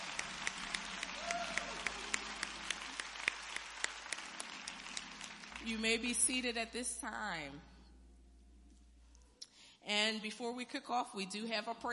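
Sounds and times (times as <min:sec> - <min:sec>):
audience applause: 0:00.0 - 0:05.8
speech: 0:05.6 - 0:07.7, 0:09.9 - 0:11.9.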